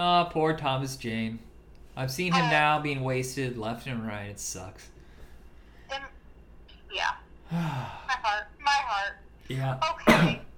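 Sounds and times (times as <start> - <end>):
speech: 0.0 - 4.9, 6.9 - 10.4
person coughing: 10.0 - 10.5
throat clearing: 10.1 - 10.5.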